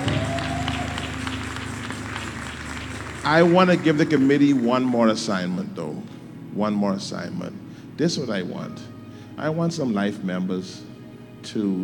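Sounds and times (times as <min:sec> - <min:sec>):
audience clapping: 0:00.0 - 0:05.7
speech: 0:03.2 - 0:11.8.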